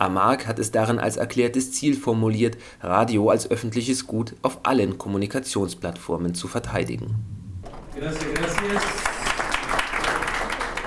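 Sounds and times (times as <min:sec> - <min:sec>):
speech: 0:00.0 - 0:07.4, 0:08.0 - 0:09.1
person's voice: 0:05.1 - 0:09.2
audience applause: 0:07.7 - 0:10.8.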